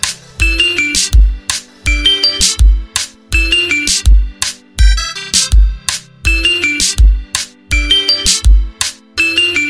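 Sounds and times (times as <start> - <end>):
Xiaomi Redmi K40 Pro ringtone: 0.4 - 5.4, 6.3 - 9.6.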